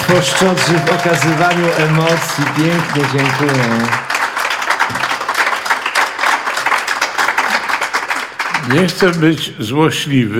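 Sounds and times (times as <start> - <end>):
audience applause: 0.0 - 9.4
speech: 0.1 - 4.1, 8.7 - 10.3.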